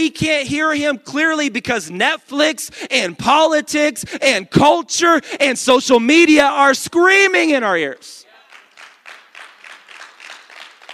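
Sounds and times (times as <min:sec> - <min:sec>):
speech: 0:00.0 - 0:08.2
audience clapping: 0:08.4 - 0:10.9.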